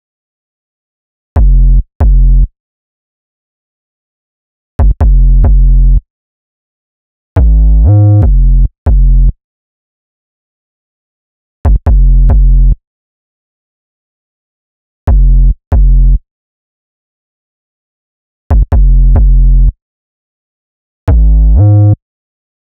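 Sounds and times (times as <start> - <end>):
wet bass: 1.4 - 2.5, 4.8 - 6.0, 7.4 - 9.4, 11.6 - 12.8, 15.1 - 16.2, 18.5 - 19.8, 21.1 - 22.0.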